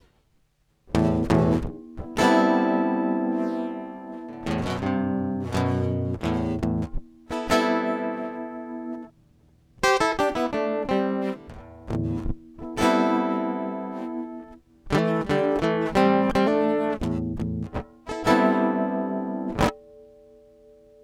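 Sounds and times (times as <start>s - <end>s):
acoustic guitar with pitch harmonizer: 1.0s - 9.1s, 9.8s - 20.6s.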